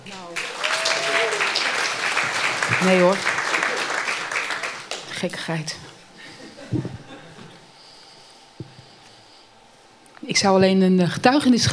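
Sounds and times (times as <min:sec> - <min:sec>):
applause: 0:00.0 - 0:06.4
laughter: 0:00.0 - 0:11.7
speech: 0:02.8 - 0:03.4, 0:05.2 - 0:05.9, 0:06.7 - 0:07.0, 0:10.3 - 0:11.7.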